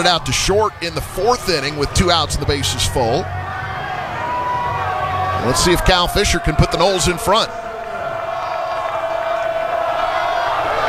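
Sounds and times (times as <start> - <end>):
speech: 0.0 - 3.4, 5.4 - 7.6
stadium crowd cheering at a baseball game: 0.0 - 10.8.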